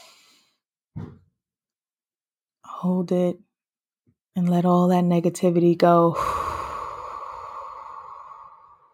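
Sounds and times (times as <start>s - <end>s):
deep breath through the nose during a calming exercise: 0.0s - 0.5s, 6.1s - 8.9s
speech: 2.8s - 3.5s, 4.4s - 6.4s.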